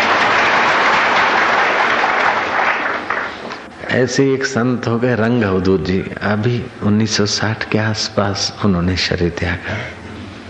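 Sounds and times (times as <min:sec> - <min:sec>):
crowd applause: 0:00.0 - 0:03.7
speech: 0:04.0 - 0:10.0.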